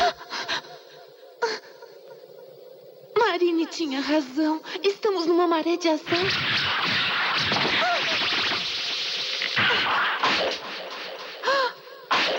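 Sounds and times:
hiss: 0.0 - 12.3
speech: 3.4 - 6.9
arrow striking a woman: 6.2 - 8.8, 9.5 - 10.9
arrows whooshing: 6.2 - 11.1.

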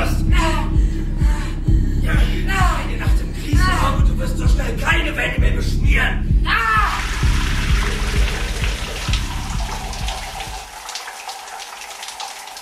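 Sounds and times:
vocal sounds: 0.0 - 7.4
shower water spraying: 6.9 - 12.5.

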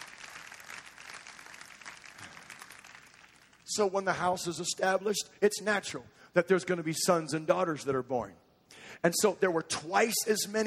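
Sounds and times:
audience clapping hands: 0.0 - 3.8
speech: 3.8 - 8.4, 9.0 - 10.6.

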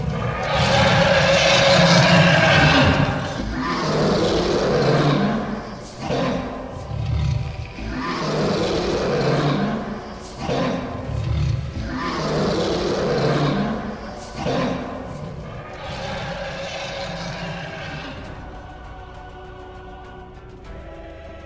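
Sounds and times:
monstrous layered roaring of many creatures: 0.0 - 18.8.

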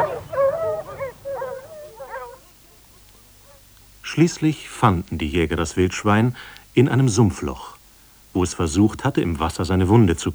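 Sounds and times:
hunting dogs baying and yelping while chasing a wounded wild boar: 0.0 - 3.8
speech: 4.2 - 7.7, 8.4 - 10.3.

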